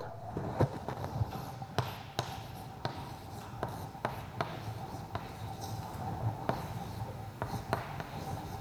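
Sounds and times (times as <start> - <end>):
handwriting on a board: 1.0 - 8.5.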